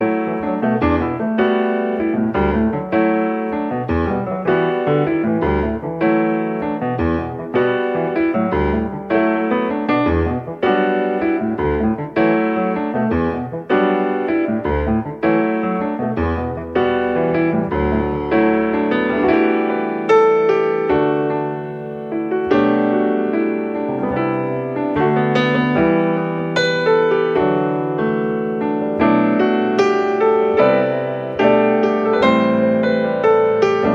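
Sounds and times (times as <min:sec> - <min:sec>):
improvised music: 0:00.0 - 0:33.9.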